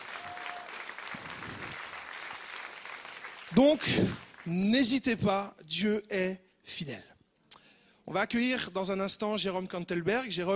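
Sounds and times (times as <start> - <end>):
audience applauding: 0.0 - 4.8
speech: 3.5 - 7.1, 8.1 - 10.5.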